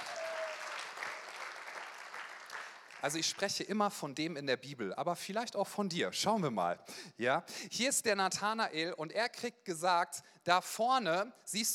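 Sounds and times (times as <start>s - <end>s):
audience applause: 0.0s - 3.2s
speech: 3.0s - 11.7s.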